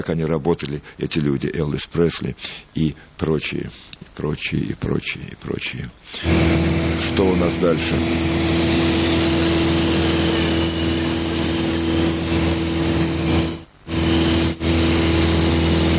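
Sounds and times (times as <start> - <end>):
speech: 0.0 - 9.3
small airplane engine in flight over San Francisco: 6.2 - 15.9.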